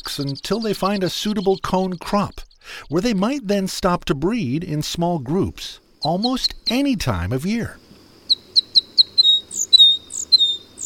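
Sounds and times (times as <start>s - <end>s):
crossbill calls: 0.0s - 3.4s, 6.0s - 10.8s
speech: 0.2s - 7.8s.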